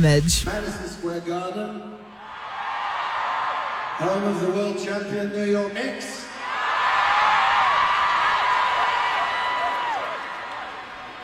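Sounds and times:
speech: 0.0 - 2.0, 4.0 - 6.2
arena crowd cheering: 2.2 - 4.8, 6.3 - 11.2.

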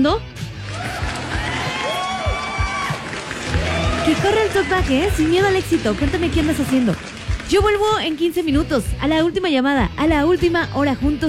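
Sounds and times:
speech: 0.0 - 0.4, 4.1 - 11.2
crowd applause: 0.6 - 8.2.

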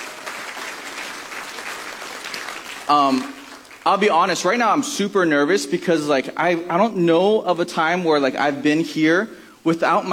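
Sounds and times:
audience applause: 0.0 - 3.9
speech: 2.9 - 10.1.

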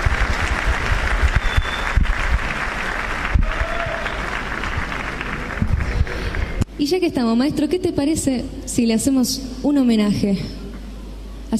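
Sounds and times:
audience applause: 0.0 - 6.6
speech: 6.9 - 10.6.

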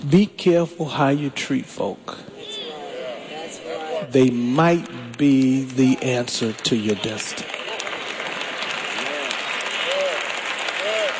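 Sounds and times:
speech: 0.0 - 2.4, 4.0 - 7.5
audience clapping: 4.2 - 11.1.

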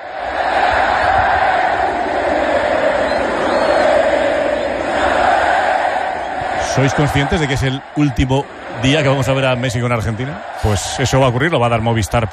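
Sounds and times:
football fans roaring at the Monumental stadium before Argentina against Benin: 0.0 - 12.3
speech: 6.8 - 12.3.

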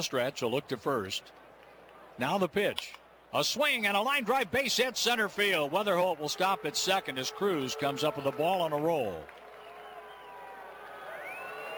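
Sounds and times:
speech: 0.0 - 1.4, 2.2 - 9.4
baseball fans booing pitcher Soto: 5.4 - 11.7.

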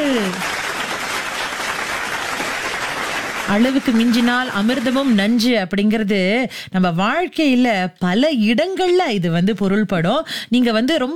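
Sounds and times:
audience clapping: 0.0 - 5.2
speech: 3.5 - 11.1.

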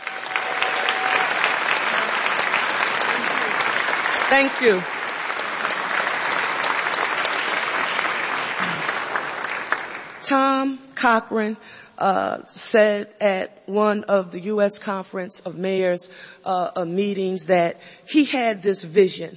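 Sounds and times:
audience applause: 0.0 - 10.2
speech: 4.3 - 5.0, 10.3 - 19.3.

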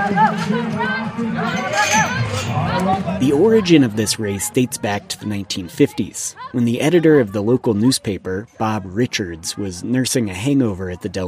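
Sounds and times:
crowd hollering and cheering at camel race: 0.0 - 7.8
speech: 0.0 - 11.2.

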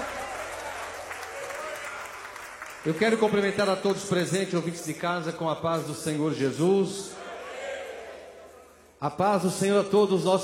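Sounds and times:
congregation applauding during a church service: 0.0 - 5.0
speech: 2.8 - 7.2, 9.0 - 10.4.

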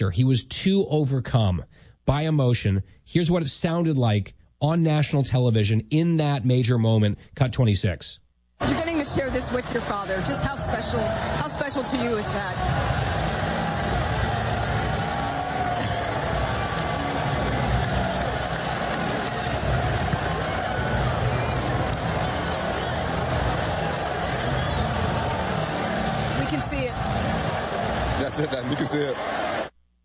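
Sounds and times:
speech: 0.0 - 13.2, 28.6 - 29.5
Knicks basketball fans cheering in arena: 8.6 - 29.7.

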